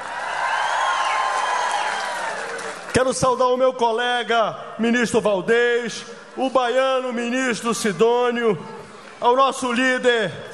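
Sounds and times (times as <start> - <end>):
faint cheers: 0.0 - 2.8
audience applause at a political event: 0.0 - 3.1
speech: 2.9 - 10.5.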